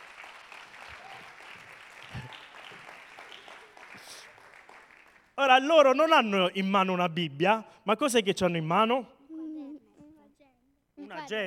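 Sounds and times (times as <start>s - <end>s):
audience applause: 0.0s - 5.4s
speech: 5.4s - 9.2s, 11.3s - 11.4s.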